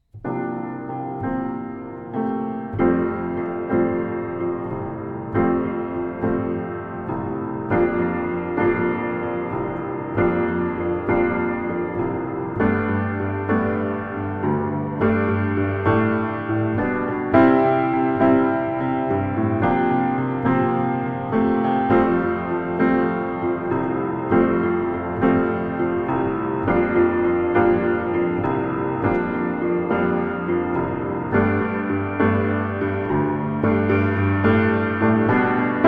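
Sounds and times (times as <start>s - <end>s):
instrumental music: 0.0s - 35.8s.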